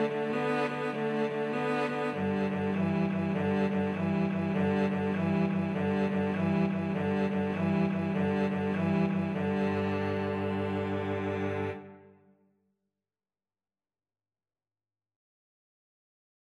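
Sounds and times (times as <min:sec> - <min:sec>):
violin and cello duet: 0:00.0 - 0:12.1.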